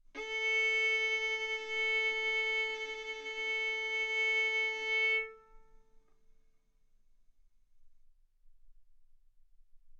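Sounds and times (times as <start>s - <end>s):
violin arco on A string: 0.2s - 5.9s.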